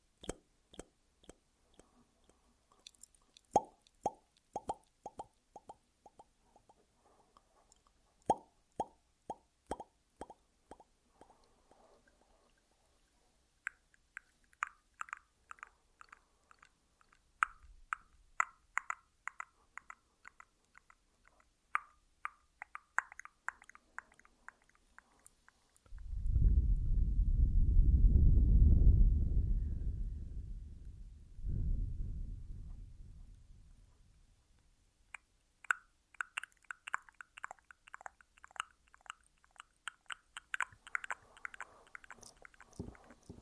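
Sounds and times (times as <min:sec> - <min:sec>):
mouth clicks, pops and wet smacks with an echo: 0:00.0 - 0:06.8, 0:07.7 - 0:12.6, 0:13.6 - 0:26.6, 0:35.1 - 0:43.4
loud low rumbling whoosh: 0:25.9 - 0:33.9.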